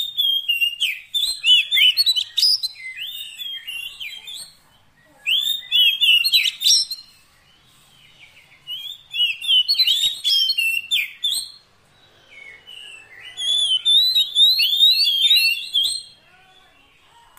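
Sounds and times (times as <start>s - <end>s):
Oriental magpie-robin song: 0.0s - 17.1s.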